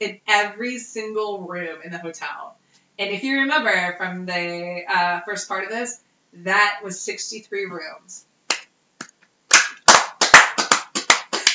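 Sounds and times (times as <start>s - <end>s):
speech: 0.0s - 8.3s
hand clapping: 8.5s - 11.5s.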